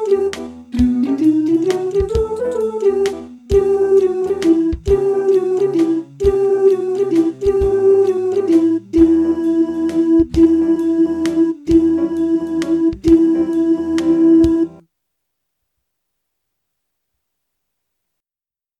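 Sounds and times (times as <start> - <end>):
soprano voice singing: 0.0 - 14.8.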